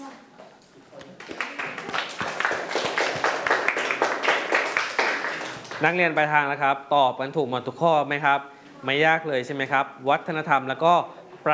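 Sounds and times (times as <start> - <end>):
clapping: 1.2 - 5.9
speech: 5.8 - 11.5.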